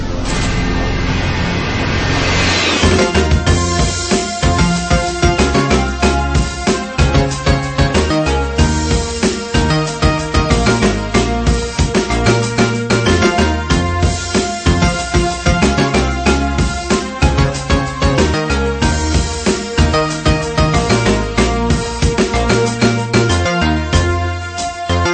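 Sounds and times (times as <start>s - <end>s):
jungle remix music: 0.2s - 25.1s.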